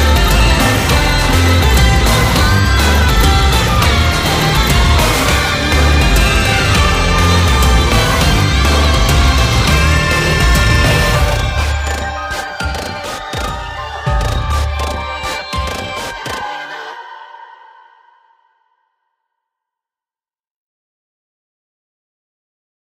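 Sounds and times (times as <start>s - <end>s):
battle background music: 0.0s - 16.5s.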